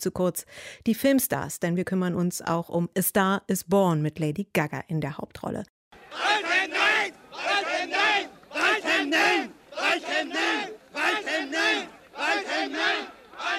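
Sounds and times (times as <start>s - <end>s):
speech: 0.0s - 6.8s
demonstrators chanting Waldheim nein at a 1986 Vienna protest: 6.0s - 13.5s.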